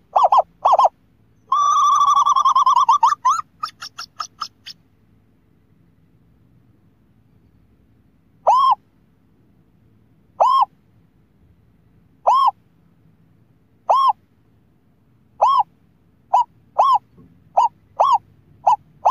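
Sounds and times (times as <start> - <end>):
scops owl hooting: 0.0 - 4.8, 8.4 - 8.8, 10.4 - 10.8, 12.2 - 12.6, 13.8 - 14.2, 15.4 - 15.7, 16.3 - 19.0.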